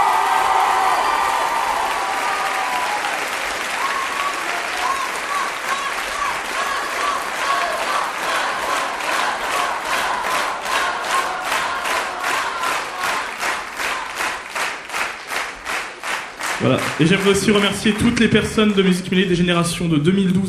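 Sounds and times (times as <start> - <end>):
audience cheering and shouting at a music school show: 0.0 - 14.2
audience applause at a music school show: 0.0 - 19.3
speech: 16.7 - 20.4.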